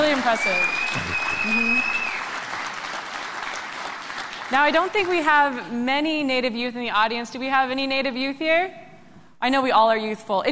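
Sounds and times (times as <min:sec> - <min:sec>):
crowd applauding: 0:00.0 - 0:05.4
speech: 0:00.2 - 0:02.0, 0:04.5 - 0:08.8, 0:09.4 - 0:10.5.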